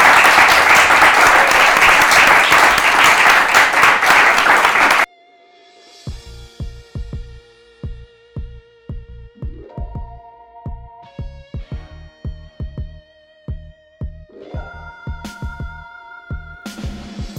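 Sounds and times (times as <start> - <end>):
audience applause: 0.0 - 5.1
quiet musical passage with soft low thumping beats: 6.1 - 17.3.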